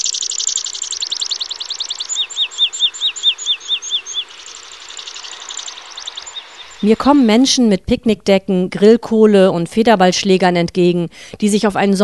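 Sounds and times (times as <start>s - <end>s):
hammering rising bird trill: 0.0s - 7.6s
speech: 6.8s - 12.0s.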